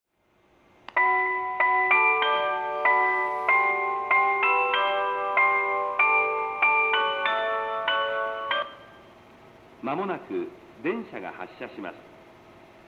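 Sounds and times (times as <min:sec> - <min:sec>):
melody: 0:01.0 - 0:09.1.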